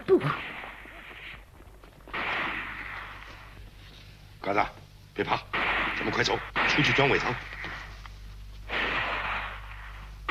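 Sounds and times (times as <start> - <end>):
speech: 0.2 - 0.5, 4.4 - 7.6
pistol gunshots: 2.1 - 3.2, 5.5 - 7.8, 8.7 - 10.2.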